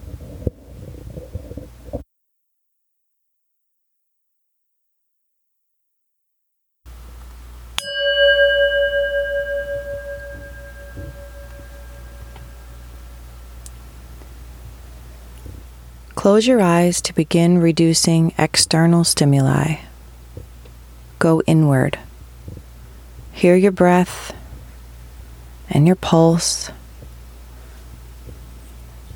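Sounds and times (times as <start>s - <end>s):
singing bowl struck: 7.8s - 13.1s
speech: 16.2s - 19.9s, 21.2s - 22.1s, 23.4s - 24.4s, 25.7s - 26.8s.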